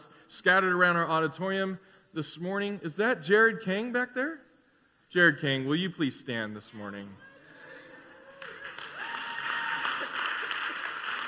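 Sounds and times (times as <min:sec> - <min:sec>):
speech: 0:00.4 - 0:04.5, 0:05.1 - 0:07.3
audience applause: 0:08.3 - 0:11.2.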